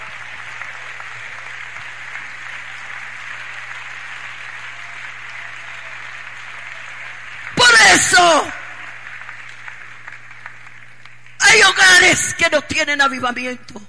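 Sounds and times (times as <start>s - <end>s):
audience applauding: 0.0s - 12.3s
speech: 12.1s - 13.8s.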